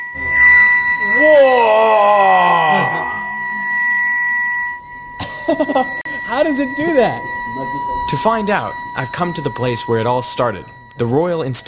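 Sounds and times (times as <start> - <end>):
vibrating 1 kilogram aluminium plate wailing: 0.0 - 11.6
speech: 5.6 - 11.6.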